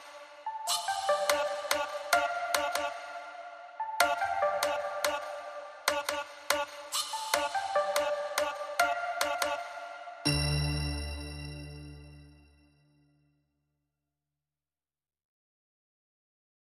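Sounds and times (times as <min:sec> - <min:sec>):
vocal bell tones: 0:00.5 - 0:05.9, 0:07.1 - 0:12.4.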